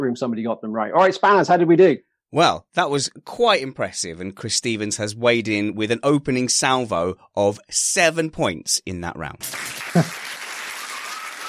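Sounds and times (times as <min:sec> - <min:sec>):
speech: 0:00.1 - 0:10.3
polite golf-style applause: 0:09.4 - 0:11.4.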